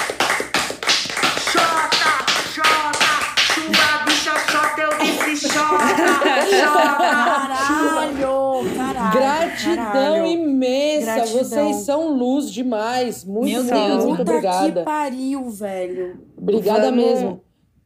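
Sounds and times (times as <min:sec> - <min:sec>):
church audience clapping: 0:00.0 - 0:07.3
laughter: 0:03.6 - 0:10.2
speech: 0:09.1 - 0:17.4.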